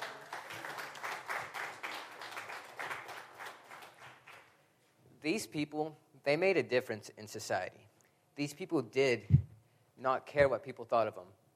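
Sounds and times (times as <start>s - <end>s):
applause: 0.0s - 4.6s
speech: 5.2s - 9.4s, 10.0s - 11.5s.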